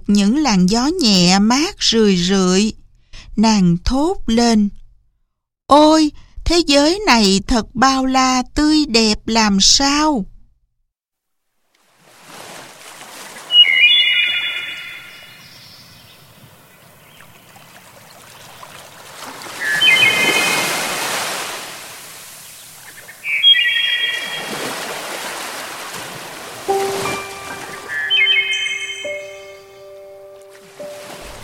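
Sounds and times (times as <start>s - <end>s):
speech: 0.1s - 2.8s, 3.4s - 4.8s, 5.7s - 10.3s
ocean waves washing in as the wind rises: 11.8s - 31.4s
short high bird chirps over the water: 13.4s - 17.5s, 19.6s - 20.8s, 22.4s - 24.6s, 26.7s - 31.0s.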